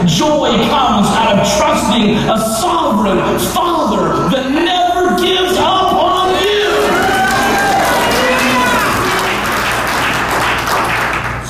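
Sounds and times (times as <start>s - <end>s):
speech: 0.0s - 6.0s
audience clapping: 6.7s - 11.4s.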